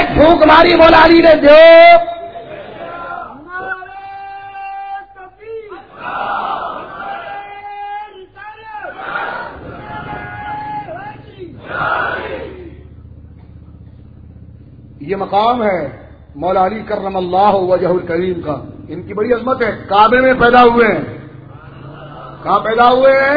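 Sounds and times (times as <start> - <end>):
speech: 0.2 - 2.1, 15.1 - 21.1, 22.4 - 23.3
crowd chanting a slogan at a religious sermon: 2.4 - 3.4, 5.8 - 7.6, 8.9 - 12.8
laughter: 21.4 - 23.2.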